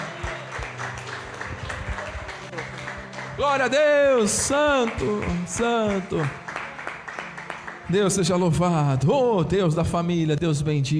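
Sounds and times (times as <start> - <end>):
audience applause: 0.0 - 8.2
speech: 3.4 - 6.4, 7.9 - 10.9.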